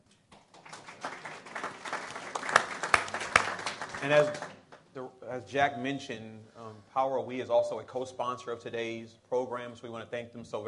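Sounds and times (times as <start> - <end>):
audience applause: 0.4 - 4.6
speech: 4.0 - 10.6.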